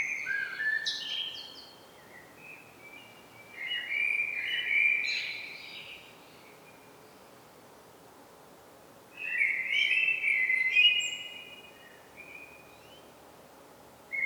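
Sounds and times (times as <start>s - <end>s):
common blackbird Turdus merula song: 0.0s - 6.9s, 9.2s - 13.1s.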